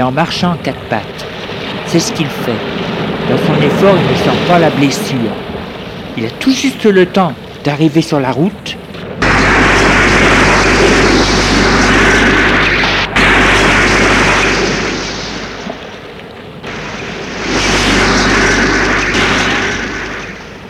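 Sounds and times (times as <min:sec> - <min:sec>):
speech: 0:00.0 - 0:05.5, 0:06.2 - 0:08.8
car exploding: 0:09.0 - 0:20.6.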